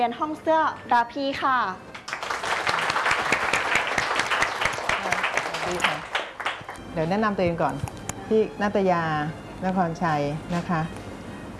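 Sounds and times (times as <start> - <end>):
speech: 0.0 - 1.9, 5.7 - 6.1, 6.9 - 11.0
audience applause: 2.1 - 6.8.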